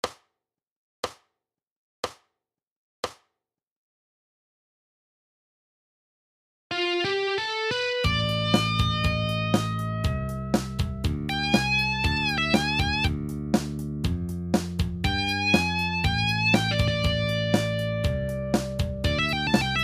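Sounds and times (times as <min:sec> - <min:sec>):
power blues music: 0:06.7 - 0:14.2, 0:15.0 - 0:19.8.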